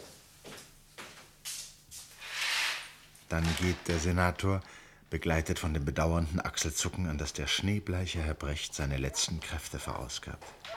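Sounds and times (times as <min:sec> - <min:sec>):
window frame creaking and knocking as it is opened: 0:02.2 - 0:04.4
speech: 0:03.3 - 0:10.6.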